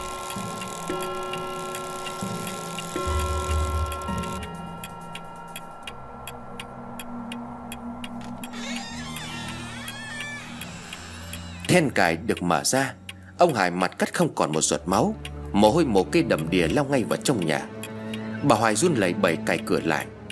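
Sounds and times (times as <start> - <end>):
low humming drone with sustained tones: 0.0 - 12.3
clock ticking: 0.0 - 20.3
speech: 0.9 - 1.4, 11.8 - 17.7, 18.4 - 20.2.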